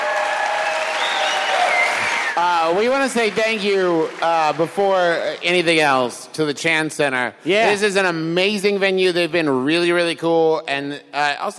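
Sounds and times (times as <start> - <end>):
cheers and whoops: 0.0 - 2.8
audience applause: 0.0 - 6.1
speech: 2.4 - 11.5.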